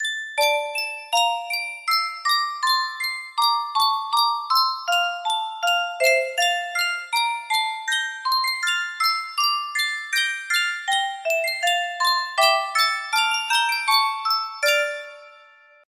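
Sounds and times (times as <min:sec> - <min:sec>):
music box melody: 0:00.0 - 0:15.9.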